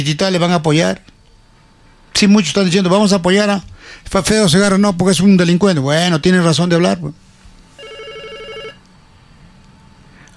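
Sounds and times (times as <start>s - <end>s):
speech: 0.0s - 1.1s, 2.2s - 7.2s
electronic warbling telephone ring for a call to a radio news show: 7.8s - 8.8s.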